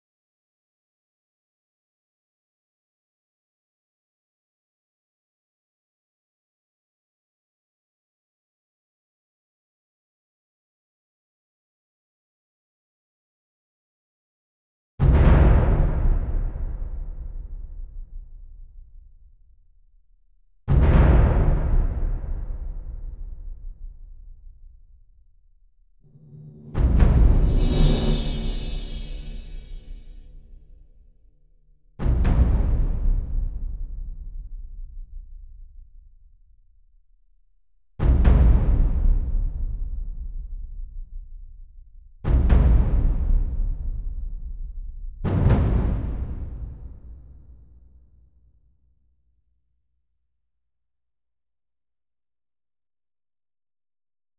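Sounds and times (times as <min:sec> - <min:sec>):
percussion: 0:15.0 - 0:36.9, 0:38.0 - 0:48.3.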